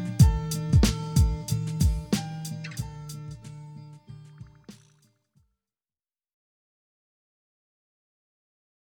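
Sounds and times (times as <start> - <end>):
rap instrumental: 0.0 - 3.5.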